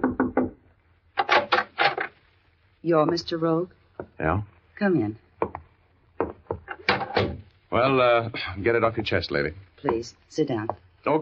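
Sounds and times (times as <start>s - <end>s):
knuckles knocking on a cabin door: 0.0s - 0.6s, 5.4s - 7.4s
speech: 2.8s - 5.2s, 7.8s - 11.1s.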